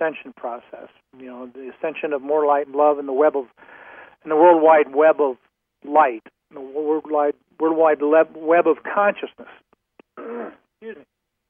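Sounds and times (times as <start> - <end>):
speech: 0.0 - 9.6, 10.2 - 11.1
throat clearing: 10.1 - 11.0.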